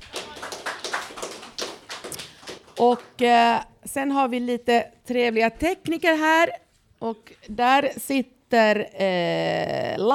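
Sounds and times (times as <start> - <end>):
audience clapping: 0.0 - 3.3
speech: 2.8 - 10.1.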